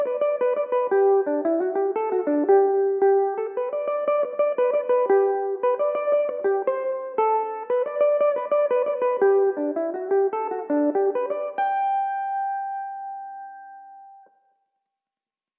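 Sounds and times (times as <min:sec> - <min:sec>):
Irish mandolin playing: 0:00.1 - 0:12.0.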